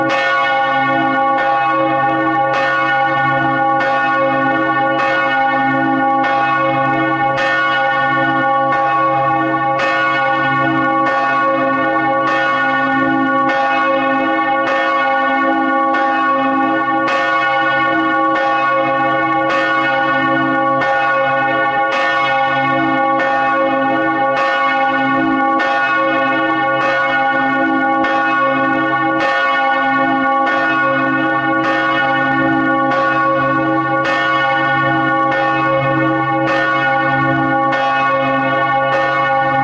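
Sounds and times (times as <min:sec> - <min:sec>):
church bells ringing: 0:00.0 - 0:39.6.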